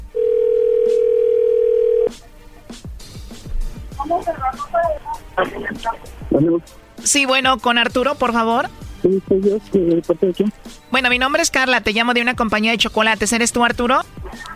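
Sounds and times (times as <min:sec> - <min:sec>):
telephone dial tone: 0:00.1 - 0:02.1
speech: 0:04.1 - 0:14.1.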